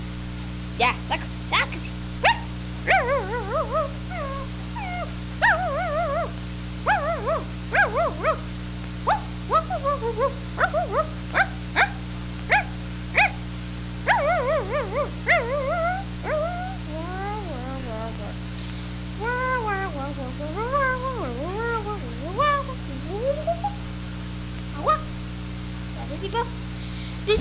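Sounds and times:
steady low hum: 0.0s - 27.3s
speech: 0.8s - 1.3s
dog in a vampire costume whimpering and whining: 2.2s - 8.5s, 9.1s - 13.4s, 14.1s - 18.3s, 19.2s - 23.8s
dog in a vampire costume barking and yipping: 2.2s - 13.4s, 14.0s - 16.8s.

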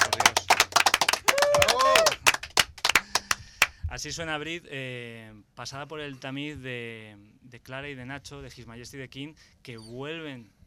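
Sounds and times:
applause: 0.0s - 3.8s
person cheering: 1.1s - 2.4s
speech: 4.0s - 10.6s.

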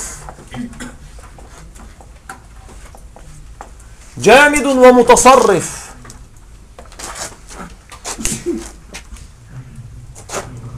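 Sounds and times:
speech: 4.2s - 5.9s
person sneezing: 7.5s - 8.8s.

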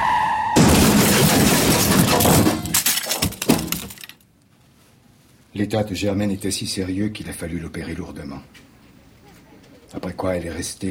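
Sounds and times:
car crash impact: 0.0s - 4.2s
glass shattering in car crash: 0.6s - 4.2s
debris clattering down: 0.6s - 4.3s
speech: 5.6s - 8.7s, 9.9s - 10.8s.

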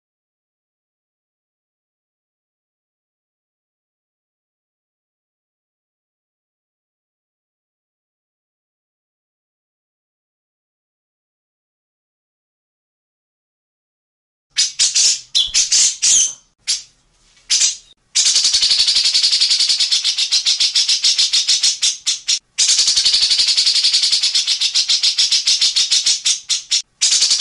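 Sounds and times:
grey-cheeked bulbul harsh rattling song: 14.6s - 16.9s, 17.5s - 27.4s.

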